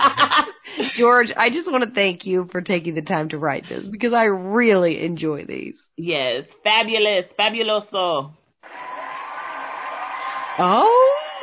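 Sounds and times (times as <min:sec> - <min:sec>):
speech: 0:01.0 - 0:09.0, 0:10.6 - 0:11.4
applause sound effect: 0:08.6 - 0:11.4.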